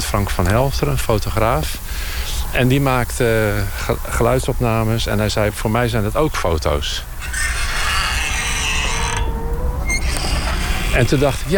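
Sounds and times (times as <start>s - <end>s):
speech: 0.1s - 7.6s, 11.0s - 11.5s
creaking spring of a screen door: 5.8s - 11.5s.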